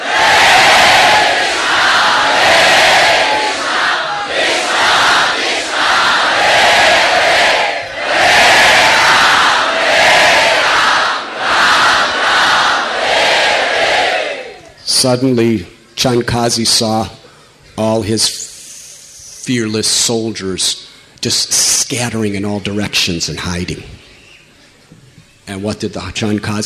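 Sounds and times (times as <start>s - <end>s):
vast crowd chanting a mantra in kirtan: 0.0s - 14.6s
speech: 15.0s - 17.2s, 17.8s - 18.4s, 19.5s - 24.1s, 25.5s - 26.6s.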